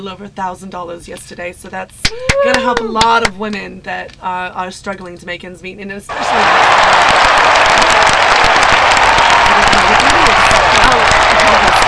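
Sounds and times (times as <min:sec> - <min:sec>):
speech: 0:00.0 - 0:08.6
applause and cheering: 0:02.0 - 0:02.9, 0:06.1 - 0:11.8.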